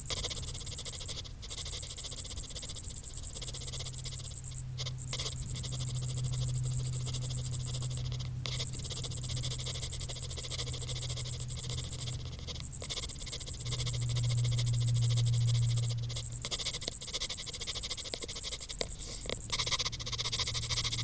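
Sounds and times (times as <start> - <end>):
several crickets chirping rapidly: 0.0 - 21.0
deeper humming tone in the background: 4.4 - 16.8.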